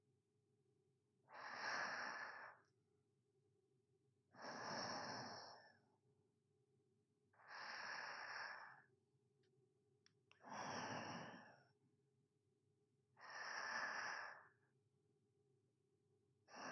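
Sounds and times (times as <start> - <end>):
sleeping breathing ASMR: 1.3 - 2.6, 4.4 - 5.8, 7.4 - 8.9, 10.4 - 11.7, 13.2 - 14.6, 16.5 - 16.7.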